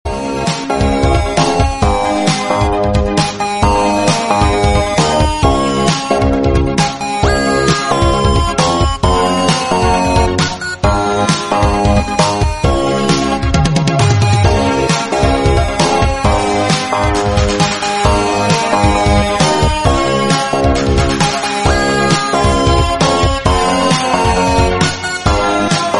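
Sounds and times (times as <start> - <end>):
instrumental music: 0.1 - 25.9.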